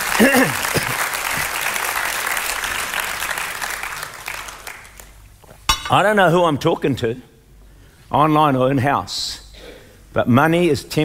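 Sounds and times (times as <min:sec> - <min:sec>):
audience clapping: 0:00.0 - 0:05.2
speech: 0:00.2 - 0:00.9, 0:05.9 - 0:07.3, 0:08.1 - 0:09.4, 0:10.1 - 0:11.0.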